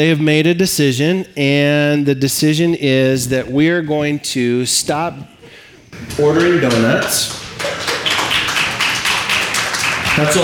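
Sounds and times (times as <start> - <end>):
speech: 0.0 - 7.9, 10.2 - 10.4
a few people clapping: 6.0 - 10.4.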